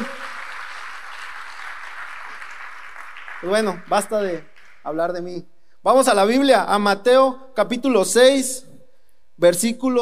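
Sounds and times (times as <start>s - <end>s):
audience applause: 0.0s - 4.8s
speech: 3.4s - 8.7s, 9.4s - 9.9s.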